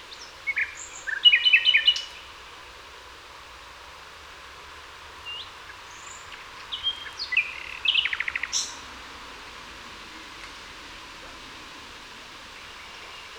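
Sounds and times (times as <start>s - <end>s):
common nightingale Luscinia megarhynchos singing: 0.0s - 2.3s, 5.2s - 8.9s.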